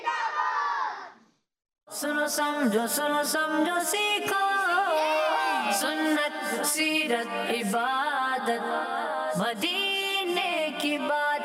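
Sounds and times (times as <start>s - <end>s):
crowd chanting a slogan at a Dawat-e-Islami religious programme: 0.0s - 1.2s, 4.9s - 6.7s
speech: 2.0s - 10.0s, 10.8s - 11.3s.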